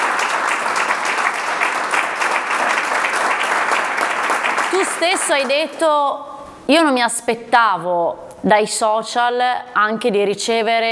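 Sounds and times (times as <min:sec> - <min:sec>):
crowd applauding: 0:00.0 - 0:05.8
speech: 0:05.0 - 0:10.9.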